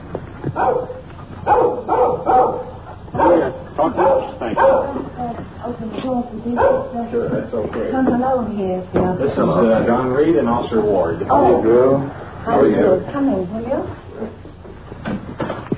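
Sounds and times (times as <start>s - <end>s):
speech: 0.6s - 1.0s, 6.5s - 13.9s
small dog barking and yipping: 0.6s - 5.1s, 6.6s - 7.0s.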